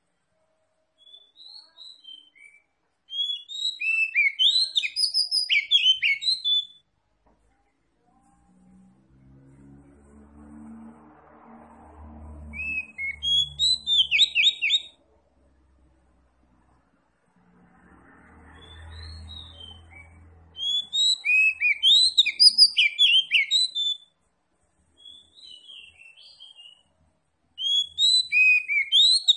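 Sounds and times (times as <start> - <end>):
Oriental magpie-robin song: 1.0 - 6.8, 12.5 - 15.0, 18.5 - 24.1, 25.0 - 26.8, 27.6 - 29.3.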